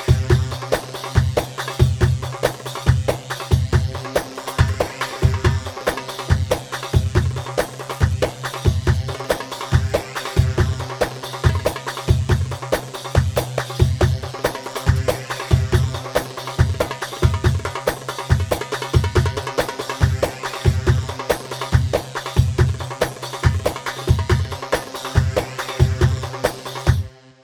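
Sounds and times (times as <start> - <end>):
Saidi rhythm on darbuka: 0.0 - 27.2.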